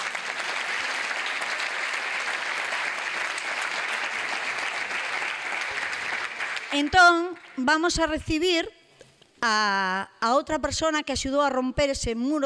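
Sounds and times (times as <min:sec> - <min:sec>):
audience applause: 0:00.0 - 0:07.6
speech: 0:06.7 - 0:08.8, 0:09.4 - 0:12.4.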